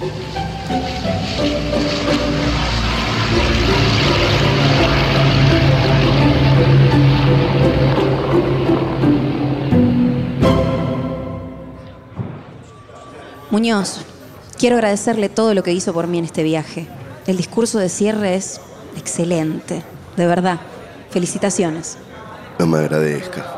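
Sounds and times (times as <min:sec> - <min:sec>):
airplane flying to Barcelona engine drone: 0:00.0 - 0:16.7
speech: 0:13.6 - 0:23.5.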